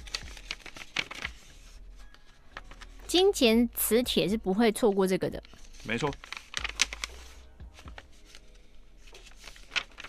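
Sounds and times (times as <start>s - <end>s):
paper rustling as an envelope is opened and searched: 0.0s - 3.0s, 5.4s - 10.0s
speech: 3.1s - 6.3s.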